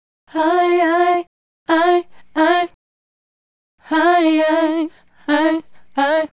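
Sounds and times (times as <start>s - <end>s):
female group hip-hop and RnB vocals: 0.3s - 2.8s, 3.8s - 6.3s.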